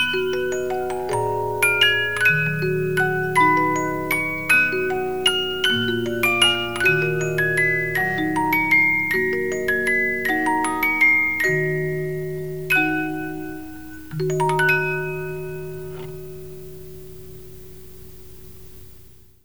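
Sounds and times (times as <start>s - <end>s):
50-note music box melody: 0.0s - 17.7s.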